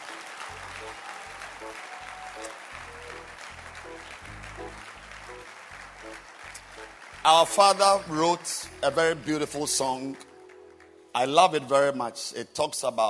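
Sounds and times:
audience clapping hands: 0.0 - 11.6
speech: 0.9 - 3.0, 7.2 - 10.3, 11.2 - 13.0.

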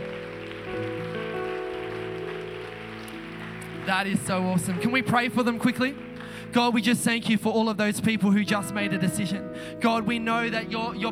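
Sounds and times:
audience applause: 0.0 - 6.8
sustained keyboard chords: 0.0 - 11.0
speech: 3.9 - 11.0.

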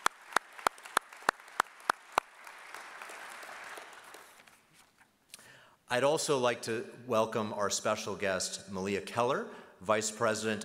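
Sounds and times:
applause at a Veterans Day forum: 0.0 - 4.7
speech: 5.9 - 10.6.

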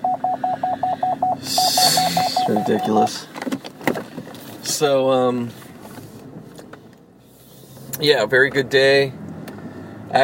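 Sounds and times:
short mid-pitched electronic beeps: 0.0 - 3.1
speech: 2.5 - 3.5, 4.8 - 5.6, 8.0 - 9.2.

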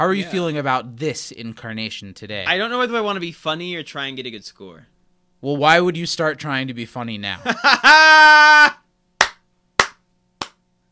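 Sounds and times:
speech: 0.0 - 8.8
laughter: 7.4 - 8.7
hands clapping: 9.2 - 10.6.

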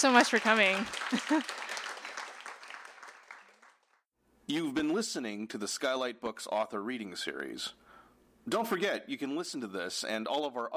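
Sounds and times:
speech: 0.0 - 1.6, 4.5 - 7.8, 8.4 - 10.7
audience applause: 0.0 - 4.0.

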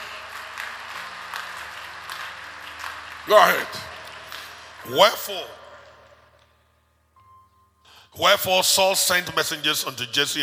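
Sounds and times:
audience clapping: 0.0 - 6.5
speech: 3.2 - 3.9, 4.8 - 5.6, 8.2 - 10.4.

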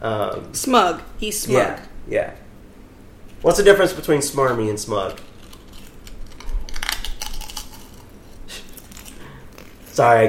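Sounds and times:
speech: 0.0 - 2.4, 3.4 - 5.3, 10.0 - 10.2
crunching potato chips: 4.9 - 10.2.

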